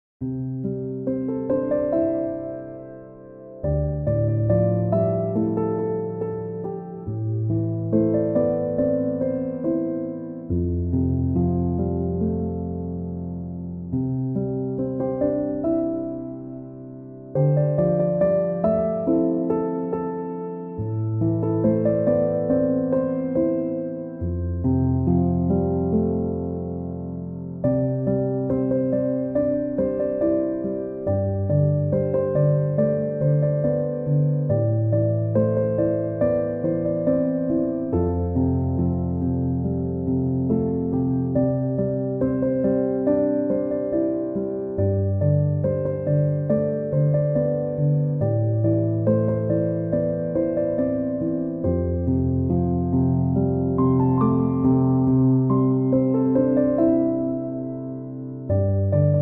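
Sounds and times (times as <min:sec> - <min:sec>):
chill piano instrumental: 0:00.2 - 0:59.1.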